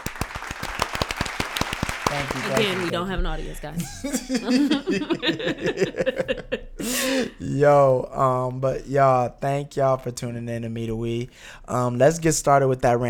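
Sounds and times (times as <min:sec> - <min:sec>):
applause: 0:00.0 - 0:03.0
laughter: 0:02.0 - 0:07.7
speech: 0:02.1 - 0:13.0.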